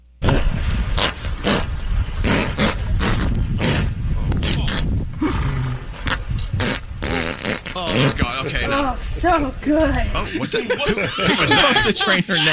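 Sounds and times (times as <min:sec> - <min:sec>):
horse farting: 0:00.2 - 0:08.4
speech: 0:08.0 - 0:12.5
laughter: 0:08.1 - 0:08.9, 0:10.1 - 0:12.5.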